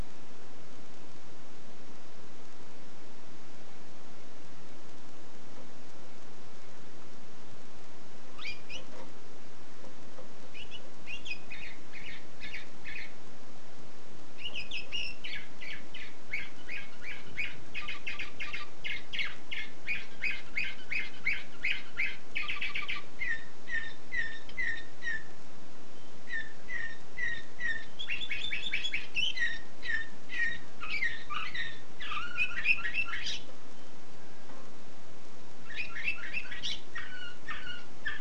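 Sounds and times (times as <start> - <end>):
hiss: 0.0 - 38.1
canary singing: 8.2 - 9.2, 9.8 - 13.2, 14.4 - 34.4, 35.6 - 38.1.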